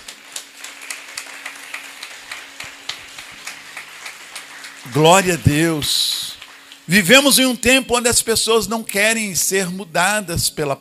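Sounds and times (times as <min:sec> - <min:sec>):
applause: 0:00.0 - 0:07.4
speech: 0:04.8 - 0:06.2, 0:06.9 - 0:10.7.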